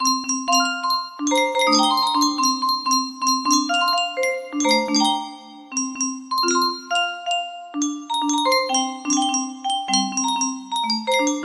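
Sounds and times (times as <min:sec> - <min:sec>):
melody: 0:00.0 - 0:11.4.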